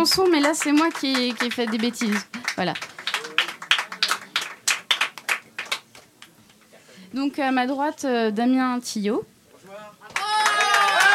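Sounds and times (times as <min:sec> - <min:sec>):
speech: 0:00.0 - 0:03.0, 0:07.1 - 0:10.1
audience applause: 0:00.0 - 0:06.3, 0:10.1 - 0:11.1.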